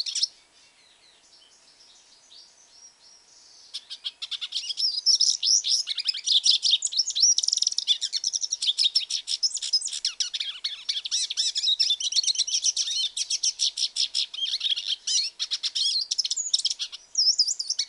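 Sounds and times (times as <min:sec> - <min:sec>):
hooded siskin twittering song: 0:00.0 - 0:17.8.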